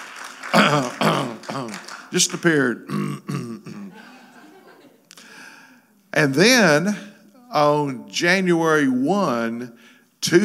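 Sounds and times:
audience hand clapping: 0.0s - 2.8s
speech: 0.6s - 1.0s, 2.1s - 3.3s, 6.2s - 10.4s
laughter: 3.7s - 5.2s.

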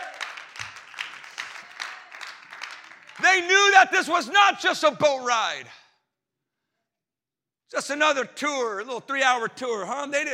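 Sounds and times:
audience clapping: 0.0s - 3.8s
speech: 3.4s - 5.8s, 7.7s - 10.3s.

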